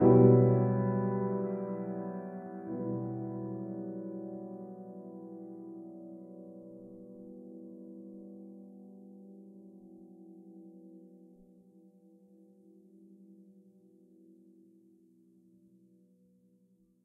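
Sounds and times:
piano: 0.0s - 17.0s.

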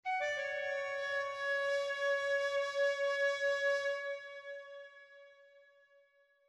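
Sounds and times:
calliope flute: 0.0s - 5.1s.

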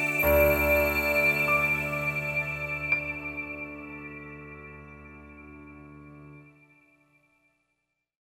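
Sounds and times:
sad story music: 0.0s - 6.6s.

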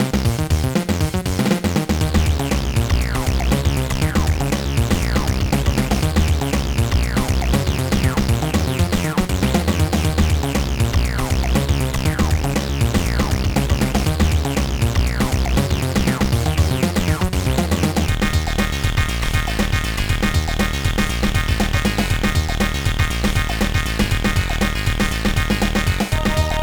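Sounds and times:
background music: 0.0s - 26.6s.

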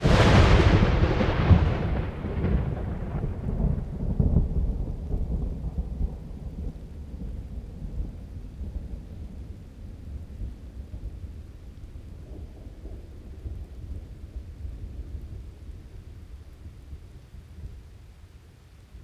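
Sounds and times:
lightning: 0.0s - 18.1s.

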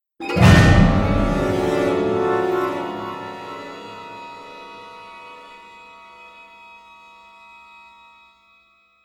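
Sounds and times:
dramatic music stinger: 0.2s - 5.8s.

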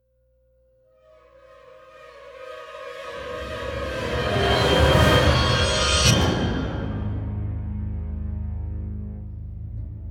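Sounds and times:
dramatic music stinger: 1.1s - 10.0s.

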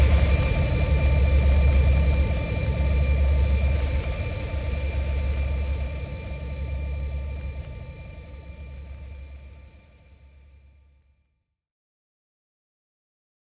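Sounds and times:
metal hell ambient drone: 0.0s - 10.6s.

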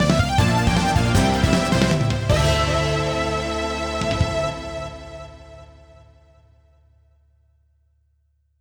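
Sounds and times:
game over jingle: 0.0s - 6.0s.

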